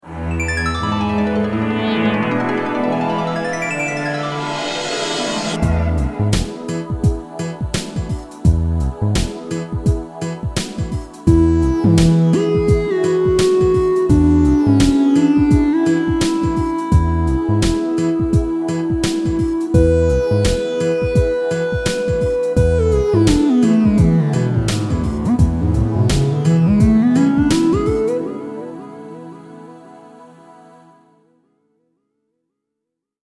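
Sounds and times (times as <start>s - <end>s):
electronic music: 0.0s - 29.5s.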